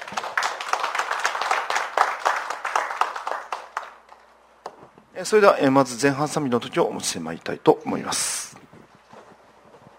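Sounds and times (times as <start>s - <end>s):
audience clapping hands: 0.0s - 4.3s
speech: 5.2s - 8.6s.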